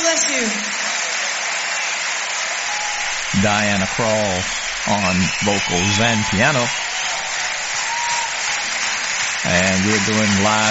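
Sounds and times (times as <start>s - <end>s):
live concert crowd applauding: 0.0s - 10.7s
speech: 3.4s - 6.9s, 9.4s - 10.7s.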